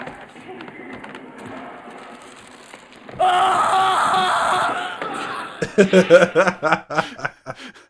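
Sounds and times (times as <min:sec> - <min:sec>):
person imitating a scream: 0:03.2 - 0:05.8
choppy laughter: 0:05.2 - 0:07.8.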